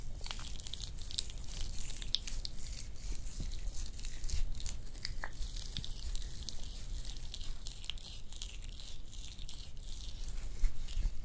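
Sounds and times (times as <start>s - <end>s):
hand massage and nail care rubbing, crinkling and crackling: 0.0s - 11.2s.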